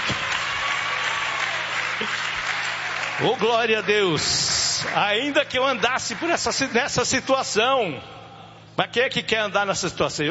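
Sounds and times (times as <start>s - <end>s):
applause at a church service: 0.0s - 7.0s
speech: 3.2s - 8.2s, 8.8s - 10.2s.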